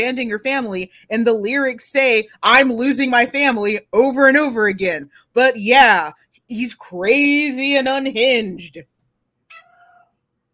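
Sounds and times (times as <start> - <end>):
speech: 0.0 - 8.9
cat meowing: 9.5 - 10.1.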